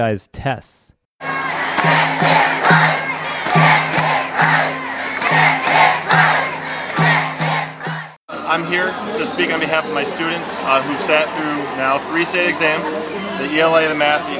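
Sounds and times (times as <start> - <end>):
speech: 0.0 - 5.5, 8.5 - 14.3
rally crowd cheering: 1.2 - 14.3.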